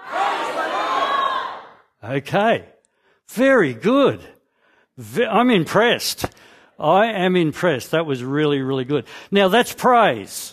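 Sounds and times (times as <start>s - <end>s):
audience yelling: 0.0s - 1.8s
speech: 2.1s - 2.7s, 3.3s - 4.4s, 5.0s - 10.5s.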